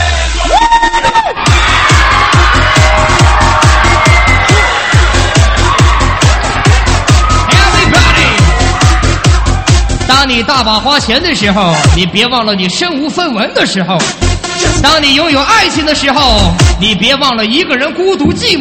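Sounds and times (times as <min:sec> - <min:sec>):
crowd screaming and cheering: 0:00.0 - 0:12.0
speech: 0:10.3 - 0:18.6.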